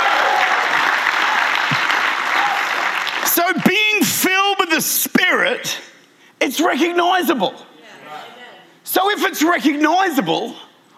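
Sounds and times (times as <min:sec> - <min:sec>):
audience clapping hands: 0:00.0 - 0:04.1
speech: 0:04.8 - 0:07.7, 0:08.9 - 0:10.6.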